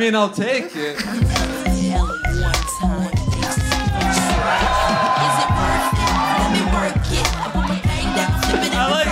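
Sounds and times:
speech: 0:00.0 - 0:01.8
audience cheering: 0:02.0 - 0:09.0.

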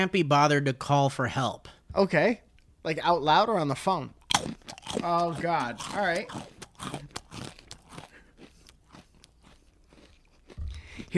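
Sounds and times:
speech: 0:00.0 - 0:04.2, 0:04.9 - 0:07.0
crunching pretzels while eating: 0:04.2 - 0:11.1.

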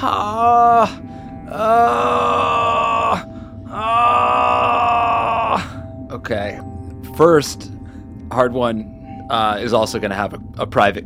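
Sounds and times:
speech: 0:00.0 - 0:02.2, 0:07.2 - 0:07.7, 0:08.3 - 0:11.0
people moaning: 0:00.0 - 0:05.8.

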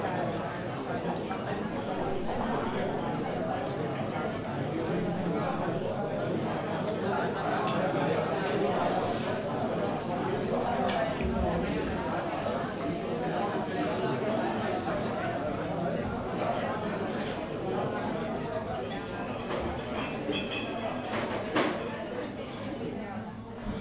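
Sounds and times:
muffled chatter of many people in a coffee shop: 0:00.0 - 0:23.7.

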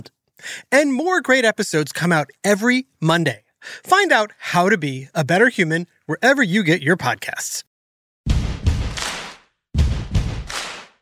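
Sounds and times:
speech: 0:00.7 - 0:07.7
opening stomps and claps from a rock song: 0:08.3 - 0:11.0.

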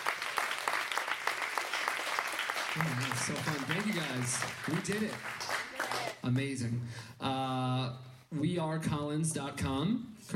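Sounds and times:
audience applause: 0:00.0 - 0:06.4
speech: 0:02.8 - 0:05.6, 0:06.2 - 0:10.3.

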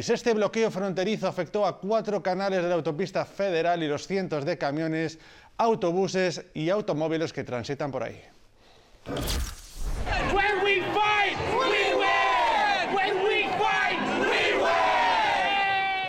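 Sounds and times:
speech: 0:00.0 - 0:08.4, 0:09.0 - 0:09.5
crowd chanting celebratory rallying cry: 0:10.0 - 0:16.0.

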